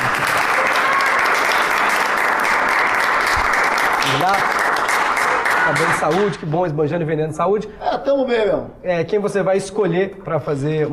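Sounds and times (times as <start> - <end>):
audience applause: 0.0 - 6.4
speech: 5.8 - 10.9.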